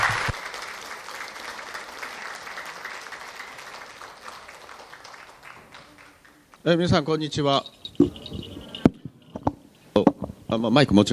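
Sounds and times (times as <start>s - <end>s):
audience applause welcoming speaker: 0.0s - 6.5s
speech: 6.6s - 8.4s, 10.5s - 11.1s.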